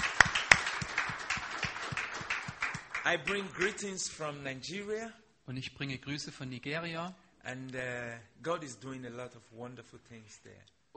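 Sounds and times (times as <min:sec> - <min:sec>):
church congregation clapping for Jesus: 0:00.0 - 0:04.0
speech: 0:03.1 - 0:10.9.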